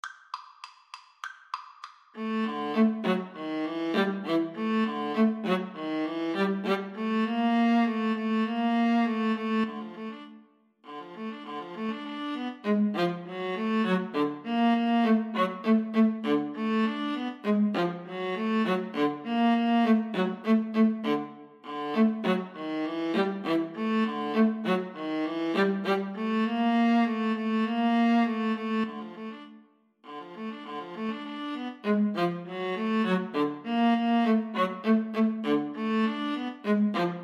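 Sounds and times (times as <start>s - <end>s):
ragtime viola duet: 2.2s - 37.2s.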